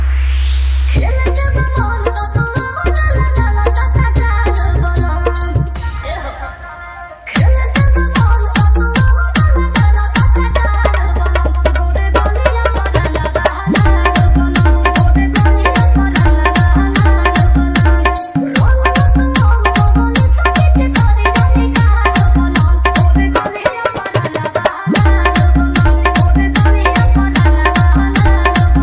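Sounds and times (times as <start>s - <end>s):
Holi DJ song with heavy vibrating bass: 0.1s - 23.9s, 24.7s - 28.8s.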